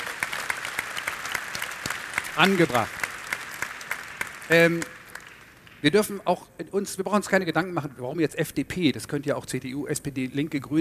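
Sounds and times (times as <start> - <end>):
audience applause: 0.0 - 5.7
speech: 2.4 - 3.0, 4.5 - 4.9, 5.8 - 10.7.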